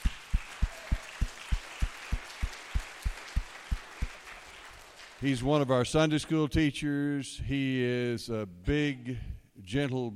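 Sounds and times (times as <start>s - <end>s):
crowd applause: 0.0s - 5.5s
speech: 5.2s - 10.1s.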